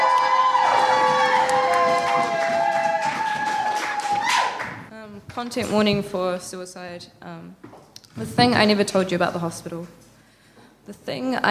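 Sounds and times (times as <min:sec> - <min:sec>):
drawn-out high whoops or whistles: 0:00.0 - 0:04.6
cheering: 0:00.0 - 0:04.8
audience applause: 0:00.0 - 0:04.9
speech: 0:05.4 - 0:10.1, 0:10.9 - 0:11.4.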